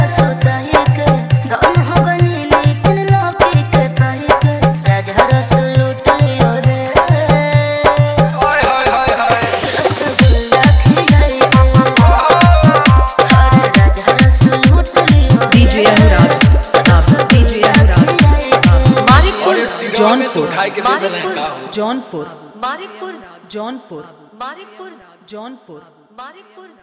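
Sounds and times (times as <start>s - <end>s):
Bhojpuri dholak bass remix: 0.0s - 20.9s.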